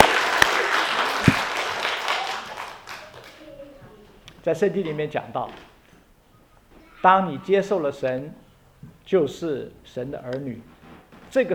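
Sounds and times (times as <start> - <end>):
audience applause: 0.0 - 3.6
speech: 4.4 - 5.7, 7.0 - 8.4, 9.1 - 11.5.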